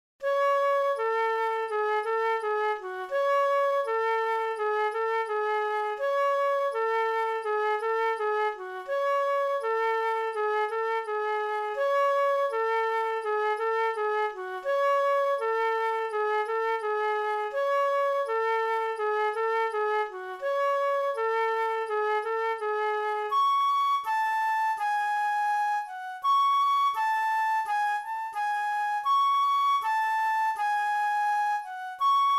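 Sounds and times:
flute: 0:00.2 - 0:32.3.

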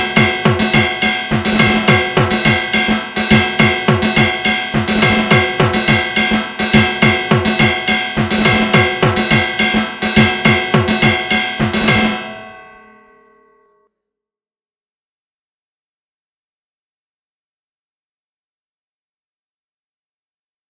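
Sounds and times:
dhak drumming: 0:00.0 - 0:13.1.

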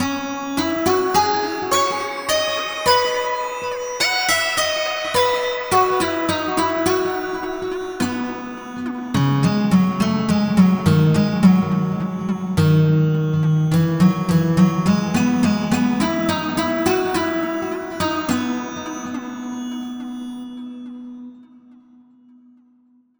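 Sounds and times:
guitar: 0:00.0 - 0:22.2.

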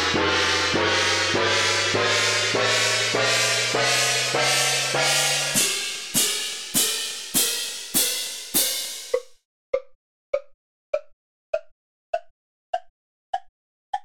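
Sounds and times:
orchestral percussion: 0:00.0 - 0:09.3.

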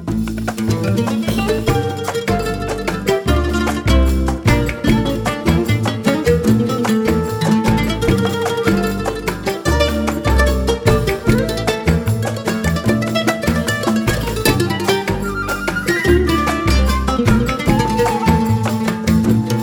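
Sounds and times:
Arabic oud melody: 0:00.2 - 0:19.6.

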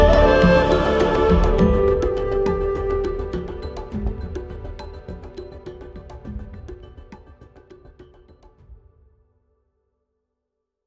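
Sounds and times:
dark kalimba: 0:00.0 - 0:08.6.

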